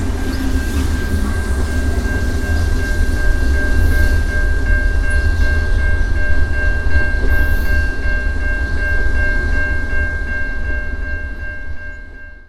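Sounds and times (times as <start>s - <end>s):
freight train in Burnaby BC Canada: 0.0s - 12.4s
railway crossing in Burnaby BC Canada: 0.0s - 12.4s.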